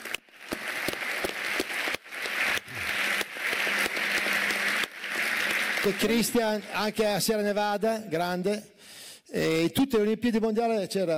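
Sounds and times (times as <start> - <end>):
crowd applause: 0.0 - 7.1
speech: 5.8 - 8.7, 9.3 - 11.1.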